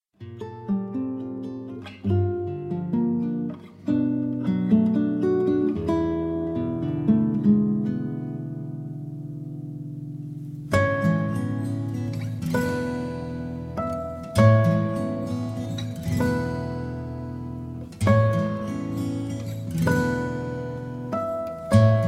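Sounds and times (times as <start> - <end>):
instrumental music: 0.2 - 22.0.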